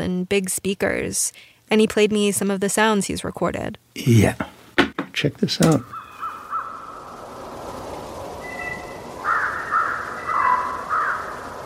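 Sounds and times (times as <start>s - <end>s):
speech: 0.1s - 4.6s, 5.2s - 6.0s
wolves: 5.8s - 7.4s, 8.4s - 11.6s.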